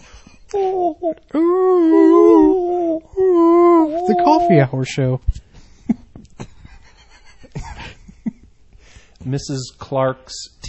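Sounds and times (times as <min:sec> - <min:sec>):
speech: 0:00.5 - 0:02.7, 0:04.1 - 0:05.4, 0:09.2 - 0:10.6
person imitating whale sounds: 0:00.5 - 0:04.7.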